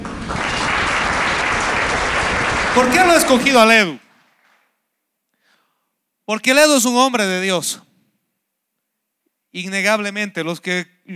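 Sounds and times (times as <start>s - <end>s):
audience applause: 0.0s - 3.7s
speech: 2.8s - 4.0s, 6.3s - 7.9s, 9.5s - 11.1s.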